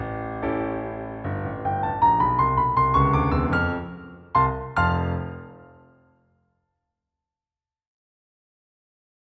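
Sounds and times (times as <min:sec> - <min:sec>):
musical accompaniment: 0:00.0 - 0:06.1.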